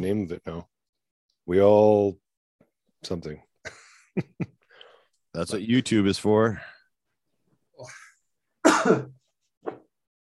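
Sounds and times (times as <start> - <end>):
speech: 0.0 - 0.8, 1.5 - 2.2, 3.0 - 4.6, 5.3 - 6.7, 7.8 - 8.0, 8.7 - 9.8
loud sneeze or cough: 8.6 - 9.2.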